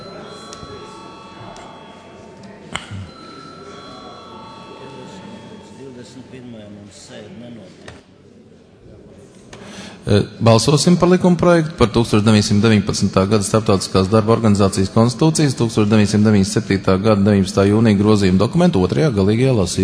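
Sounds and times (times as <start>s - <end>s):
parliament chamber bell ringing: 0.0s - 7.6s
low murmur of voices: 0.0s - 19.8s
speech: 6.3s - 8.1s, 10.0s - 19.8s.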